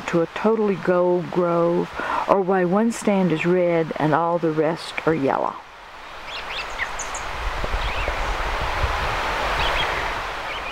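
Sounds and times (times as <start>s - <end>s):
speech: 0.1s - 5.6s
blue-headed vireo singing in aspens: 6.2s - 8.3s, 9.6s - 10.7s.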